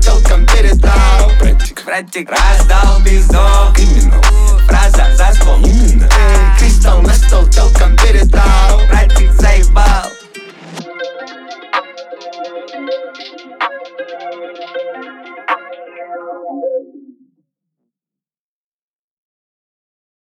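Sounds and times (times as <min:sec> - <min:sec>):
low bass tone at 41 to 46 Hz: 0:00.0 - 0:01.7, 0:02.4 - 0:10.1.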